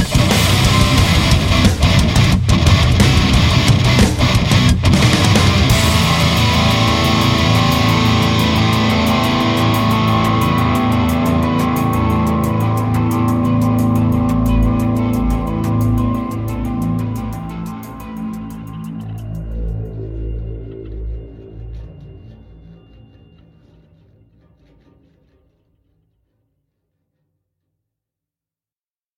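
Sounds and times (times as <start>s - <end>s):
guitar amplifier: 0.0s - 22.2s.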